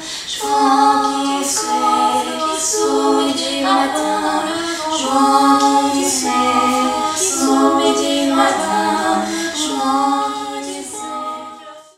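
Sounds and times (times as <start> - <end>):
musical canon: 0.4 - 11.8.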